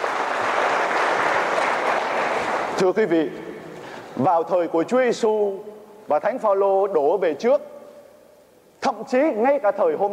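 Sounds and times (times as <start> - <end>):
audience at a Catholic religious talk applauding a woman: 0.0 - 2.8
speech: 2.8 - 3.5, 4.2 - 7.7, 8.8 - 10.1.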